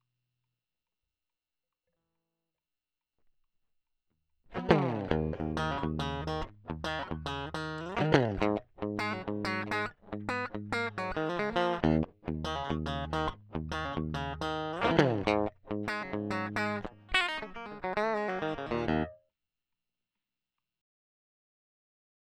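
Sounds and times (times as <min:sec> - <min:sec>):
crunchy blues music: 0:04.6 - 0:19.1.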